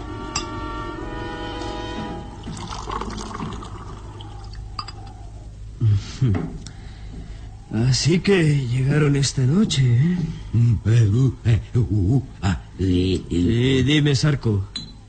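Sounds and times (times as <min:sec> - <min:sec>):
drink poured into a glass in a rustic hut: 0:02.4 - 0:05.0
glassy clinks: 0:04.8 - 0:05.1, 0:14.7 - 0:15.0
speech: 0:06.2 - 0:06.6, 0:07.7 - 0:14.8.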